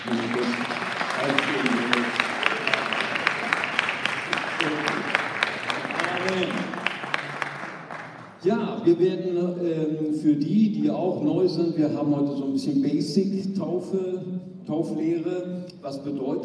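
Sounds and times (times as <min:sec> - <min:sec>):
audience applause: 0:00.0 - 0:08.4
speech: 0:09.0 - 0:16.4.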